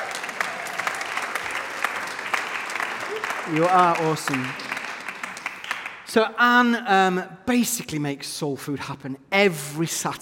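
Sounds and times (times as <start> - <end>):
audience round of applause: 0.0 - 6.1
speech: 3.5 - 4.7, 6.1 - 10.2.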